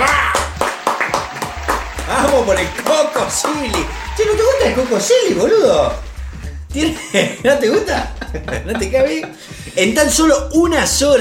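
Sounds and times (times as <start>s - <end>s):
audience applause: 0.0s - 7.1s
laughter: 0.0s - 10.3s
speech: 2.4s - 6.0s, 6.8s - 11.1s.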